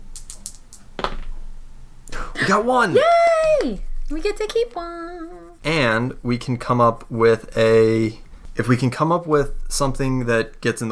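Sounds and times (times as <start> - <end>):
dice rattling down a dice tower: 0.1 - 1.3
speech: 2.5 - 10.9.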